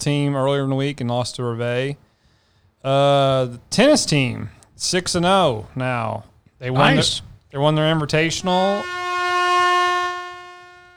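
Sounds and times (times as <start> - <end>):
speech: 0.0 - 2.0, 2.8 - 9.1
air horn blast: 8.6 - 10.9.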